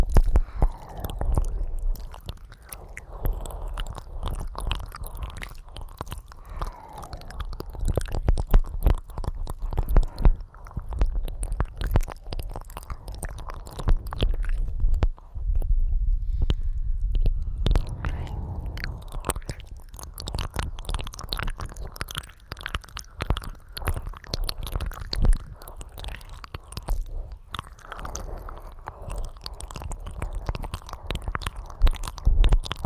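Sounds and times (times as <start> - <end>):
ear licking with wet squishy mouth sounds: 0.0 - 32.8.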